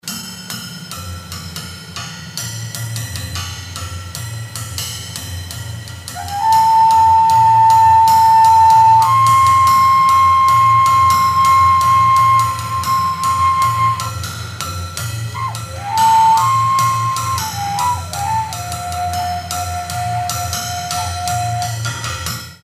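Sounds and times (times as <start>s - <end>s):
overtone flute: 6.1s - 22.1s.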